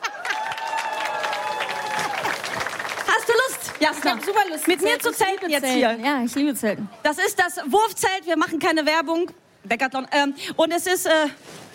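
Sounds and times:
sustained high tonal cheer or whistle: 0.0 - 2.6
audience applause: 0.0 - 6.1
speech: 3.8 - 11.7.

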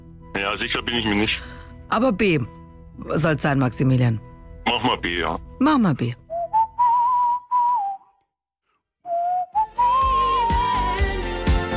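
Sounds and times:
speech: 0.4 - 6.2
whistled pop melody: 6.3 - 8.4, 9.0 - 11.7.

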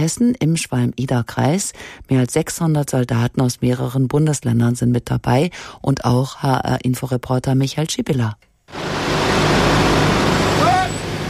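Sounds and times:
speech: 0.0 - 9.2
convoy of military trucks rolling in: 8.7 - 11.2
truck brake squeal: 9.0 - 11.2.

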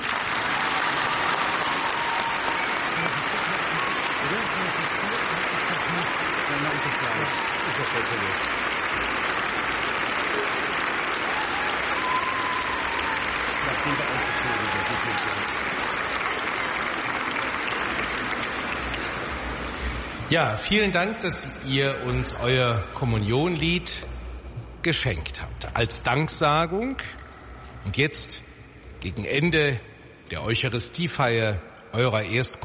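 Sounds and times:
audience clapping: 0.0 - 21.4
speech: 20.3 - 24.1, 24.8 - 27.2, 27.8 - 32.6.

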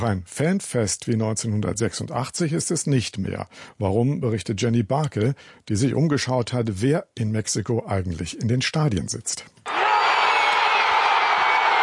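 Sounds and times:
speech: 0.0 - 9.8
stadium crowd cheering in Azteca Stadium, Mexico City, Mexico against South Africa: 9.7 - 11.8.

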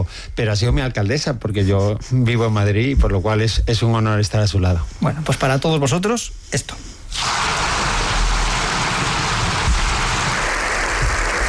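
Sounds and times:
speech: 0.0 - 7.4
recorded applause from the Congreso de los Diputados: 7.3 - 11.4.

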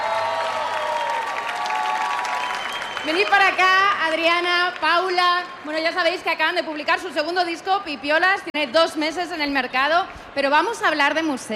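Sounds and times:
audience applause for a two-woman music duo at a radio event: 0.0 - 5.1
speech: 3.0 - 11.5.

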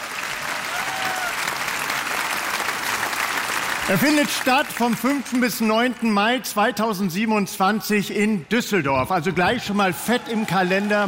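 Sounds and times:
audience applause: 0.0 - 6.2, 9.6 - 11.0
speech: 3.9 - 11.0.

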